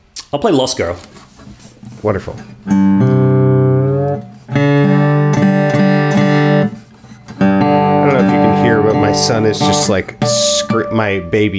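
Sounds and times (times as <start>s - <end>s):
speech: 0.3s - 1.3s, 2.0s - 3.2s, 8.3s - 11.5s
stringed instrument being retuned: 2.6s - 11.5s.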